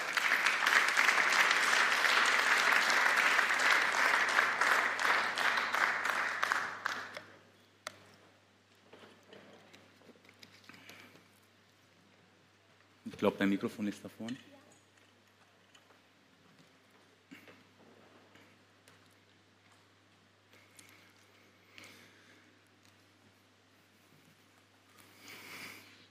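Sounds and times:
audience applause: 0.0 - 7.3
speech: 13.2 - 14.6.

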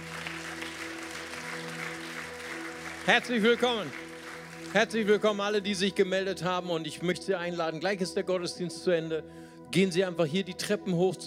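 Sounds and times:
applause: 0.0 - 5.4
speech: 3.1 - 4.0, 4.7 - 11.2.

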